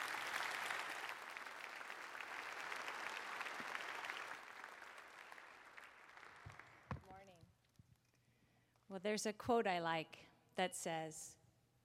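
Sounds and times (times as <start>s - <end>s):
faint audience applause greeting a speaker at Overlake: 0.0s - 7.2s
speech: 8.9s - 11.4s.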